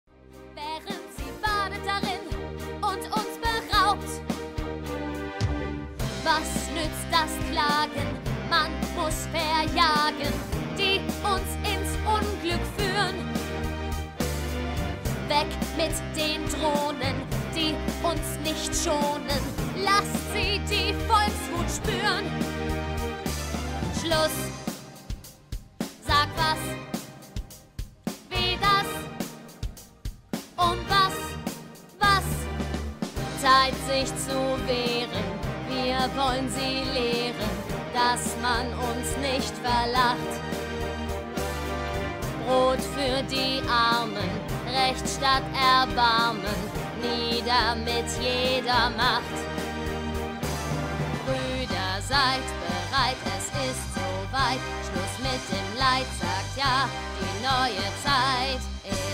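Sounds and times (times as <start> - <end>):
bass: 0.0 - 59.1.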